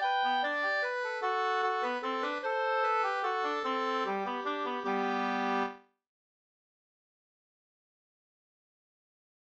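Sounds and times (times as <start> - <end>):
waltz music: 0.0 - 5.8.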